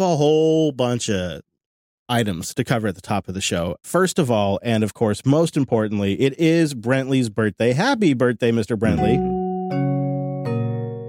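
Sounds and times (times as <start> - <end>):
speech: 0.0 - 1.5, 2.1 - 9.8
two-note doorbell-style ding-dong chime: 8.9 - 11.0.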